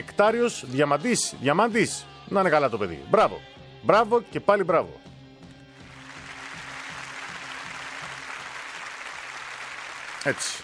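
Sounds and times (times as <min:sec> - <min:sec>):
speech: 0:00.2 - 0:05.1, 0:10.2 - 0:10.6
applause: 0:05.8 - 0:10.6.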